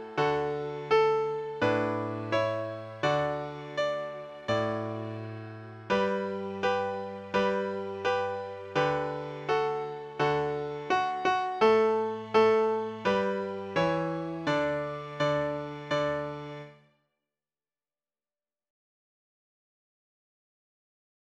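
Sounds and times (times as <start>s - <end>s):
84 BPM Christmas song: 0.0s - 16.8s.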